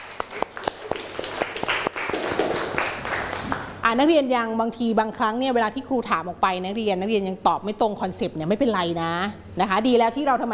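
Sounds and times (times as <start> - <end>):
students clapping in class: 0.0 - 3.8
speech: 3.9 - 10.5.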